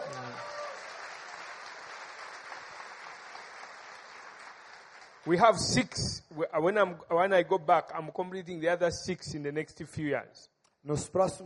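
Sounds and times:
audience applauding: 0.0s - 5.4s
speech: 5.2s - 11.4s.

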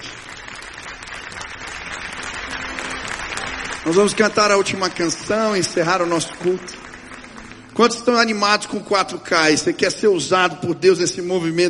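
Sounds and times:
audience applause: 0.0s - 9.2s
speech: 3.8s - 6.8s, 7.8s - 11.6s.

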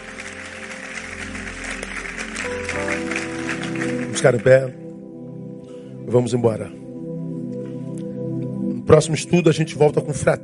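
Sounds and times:
audience applause: 0.0s - 4.8s
sustained musical tones: 0.0s - 9.5s
speech: 4.2s - 4.8s, 6.1s - 6.8s, 8.9s - 10.4s.

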